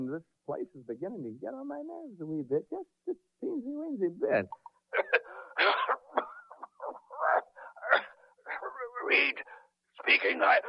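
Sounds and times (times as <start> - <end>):
speech: 0.1 - 5.9, 9.1 - 10.6
man coughing: 5.0 - 9.0.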